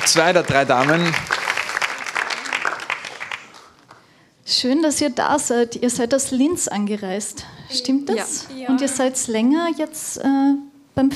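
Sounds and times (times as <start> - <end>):
speech: 0.0 - 1.3, 4.5 - 11.1
festival crowd applauding: 0.0 - 4.2.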